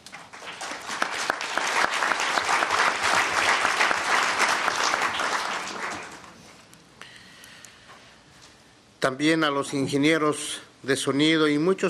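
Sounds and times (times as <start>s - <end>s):
audience applause: 0.1s - 6.4s
speech: 9.0s - 11.8s.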